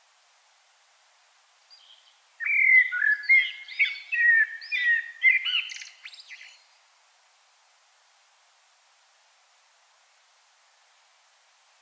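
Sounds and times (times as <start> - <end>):
common blackbird singing: 1.7 - 6.6.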